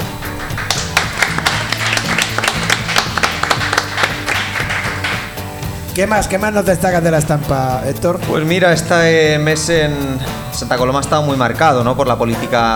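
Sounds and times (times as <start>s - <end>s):
applause: 0.0s - 5.5s
speech: 6.0s - 12.7s.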